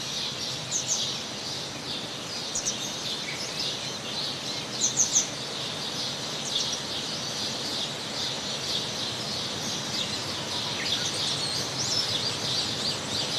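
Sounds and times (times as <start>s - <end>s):
bird chirps and short twittering calls: 0.0s - 13.3s
flowing water in a watery landscape: 4.3s - 13.3s.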